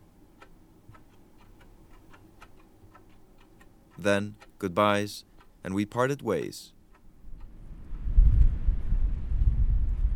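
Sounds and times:
speech: 4.0s - 6.8s
howling wind: 7.6s - 10.1s.

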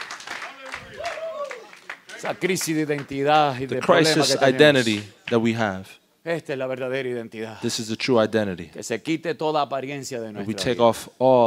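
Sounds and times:
scattered uneven clapping from a group: 0.0s - 3.9s, 4.8s - 5.5s
speech: 2.2s - 11.4s.

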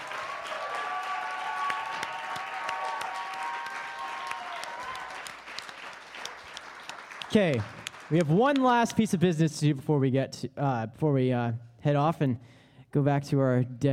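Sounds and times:
crowd applauding: 0.0s - 8.9s
speech: 7.3s - 13.9s.

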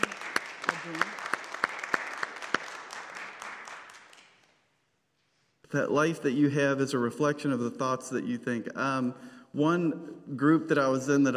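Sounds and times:
audience clapping: 0.0s - 4.7s
speech: 5.7s - 11.3s.

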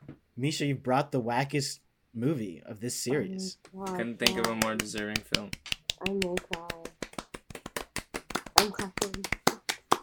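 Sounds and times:
speech: 0.4s - 6.6s, 8.6s - 9.4s
hand clapping: 3.6s - 10.0s.

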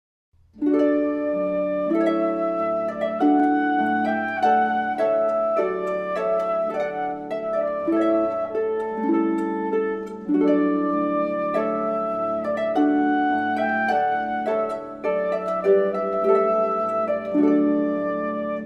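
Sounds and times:
flute: 0.6s - 18.6s
harp: 0.6s - 18.6s.

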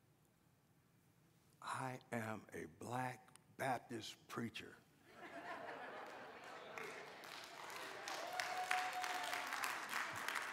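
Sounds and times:
speech: 1.8s - 4.8s
laughter: 5.1s - 7.2s
audience clapping: 5.9s - 10.5s.

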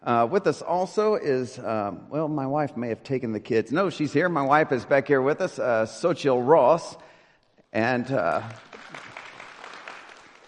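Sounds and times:
speech: 0.0s - 7.1s, 7.7s - 9.0s
audience applause in a church: 8.0s - 10.4s.

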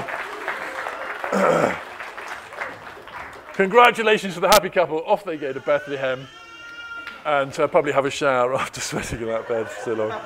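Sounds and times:
audience applause: 0.0s - 4.6s
speech: 3.6s - 6.4s, 7.2s - 10.2s
laughter: 8.5s - 10.2s.

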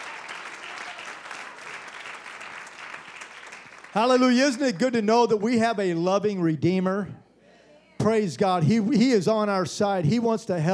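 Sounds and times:
audience clapping: 0.0s - 5.5s
speech: 3.9s - 7.2s, 8.0s - 10.7s.

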